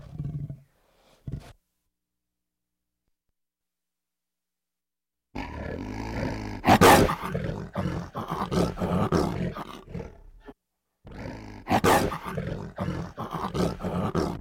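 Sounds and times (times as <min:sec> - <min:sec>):
tiger giving deep moaning rasping roars: 0:05.4 - 0:10.5, 0:11.1 - 0:14.3.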